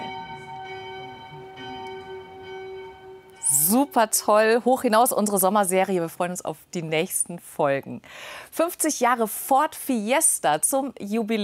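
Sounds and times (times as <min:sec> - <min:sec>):
church bells ringing the midday chime: 0:00.0 - 0:05.0
speech: 0:03.7 - 0:11.4.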